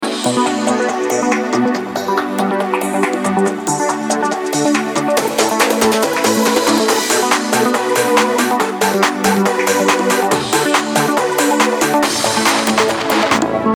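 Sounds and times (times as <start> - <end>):
opening music loop: 0.0 - 13.7.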